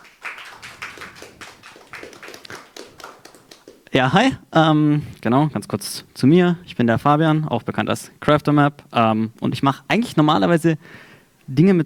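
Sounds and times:
audience applause: 0.0s - 3.9s
speech: 3.9s - 11.8s.

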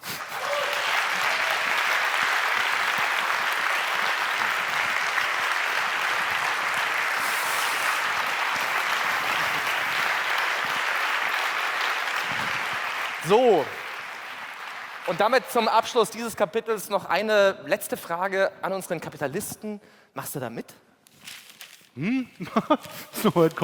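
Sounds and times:
audience applause in a hall: 0.0s - 16.2s
speech: 13.3s - 13.8s, 15.1s - 20.8s, 22.0s - 23.6s.

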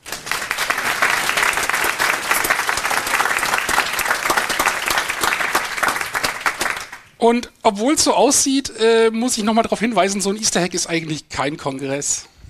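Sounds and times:
audience applause: 0.0s - 7.2s
speech: 7.2s - 12.3s.

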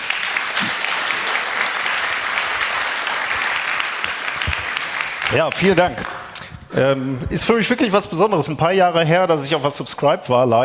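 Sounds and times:
audience applause: 0.0s - 6.4s
speech: 5.3s - 10.6s.

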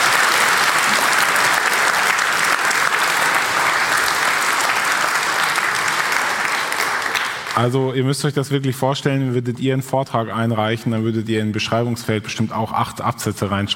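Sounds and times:
sustained audience applause: 0.0s - 7.7s
speech: 7.6s - 13.7s.

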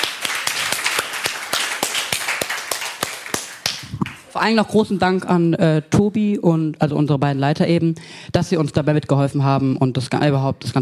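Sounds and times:
applause: 0.0s - 4.3s
speech: 4.4s - 10.7s.

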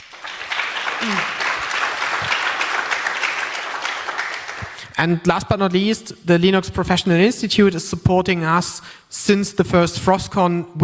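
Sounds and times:
audience applause: 0.0s - 4.8s
speech: 1.0s - 1.4s, 5.0s - 10.8s.

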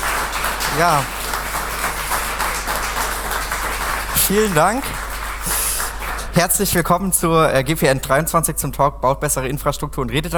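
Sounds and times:
conference audience applause for a speaker: 0.0s - 6.8s
speech: 0.8s - 1.2s, 4.3s - 5.0s, 6.4s - 10.3s.

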